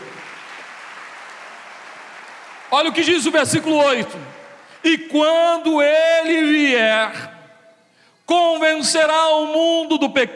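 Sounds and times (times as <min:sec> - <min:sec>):
audience applause: 0:00.0 - 0:04.8
speech: 0:02.7 - 0:07.3, 0:08.3 - 0:10.3.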